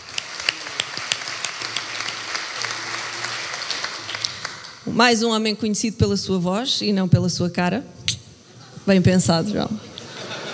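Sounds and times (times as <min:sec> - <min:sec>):
audience applause at a live comedy roast: 0:00.0 - 0:04.8
speech: 0:04.9 - 0:08.0, 0:08.9 - 0:09.8
laughter: 0:09.8 - 0:10.5.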